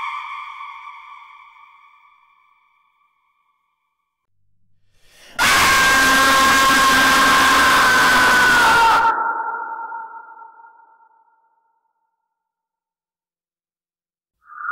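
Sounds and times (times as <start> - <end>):
scary scream sound effect: 5.2 - 9.3.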